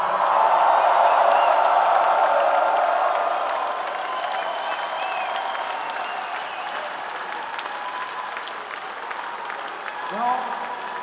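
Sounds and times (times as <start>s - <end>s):
loud crowd applauding and cheering: 0.0s - 11.0s
whistles: 4.0s - 6.9s.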